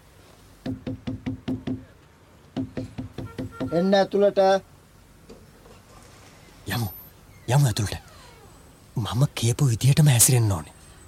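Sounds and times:
knuckles knocking on an office door: 0.6s - 1.9s, 2.6s - 3.8s
speech: 3.7s - 4.7s, 7.5s - 8.0s, 9.0s - 10.8s.

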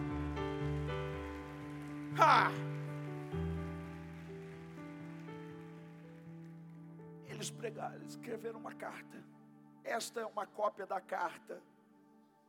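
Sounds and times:
audience applauding: 0.0s - 7.5s
speech: 2.2s - 2.7s, 7.4s - 11.7s.

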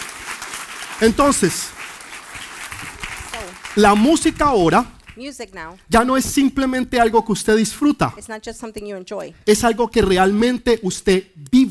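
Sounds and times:
audience applause: 0.0s - 4.8s
speech: 1.0s - 1.8s, 3.8s - 11.6s.

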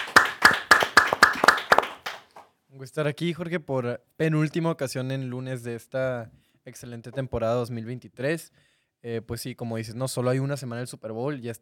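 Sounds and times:
applause: 0.0s - 2.5s
speech: 2.8s - 11.6s.

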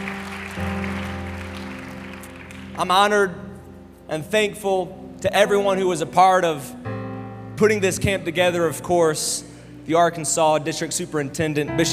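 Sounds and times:
audience hand clapping: 0.0s - 2.9s
speech: 2.8s - 3.4s, 4.1s - 6.9s, 7.6s - 11.9s.

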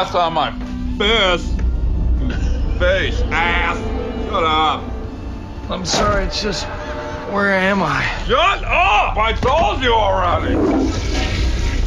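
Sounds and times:
speech: 0.0s - 1.6s, 2.2s - 4.9s, 5.7s - 11.4s
toilet flushing: 10.2s - 11.8s.

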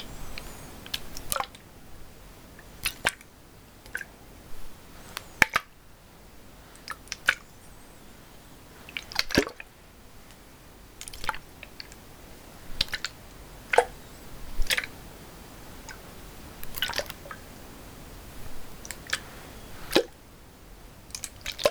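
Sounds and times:
soft steady hiss: 0.0s - 21.7s
water drips and splashes: 0.4s - 1.7s, 2.6s - 4.2s, 5.2s - 5.7s, 6.7s - 7.4s, 8.8s - 12.1s, 12.7s - 15.0s, 15.8s - 17.5s, 18.4s - 20.2s, 21.1s - 21.7s.

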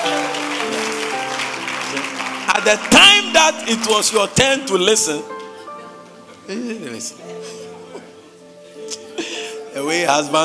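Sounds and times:
audience clapping hands in praise: 0.0s - 5.2s
speech: 2.6s - 5.4s, 6.5s - 7.6s, 9.8s - 10.4s.

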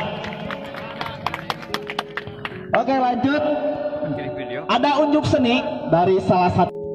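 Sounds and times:
audience applause: 0.0s - 2.6s
speech: 2.9s - 6.8s.

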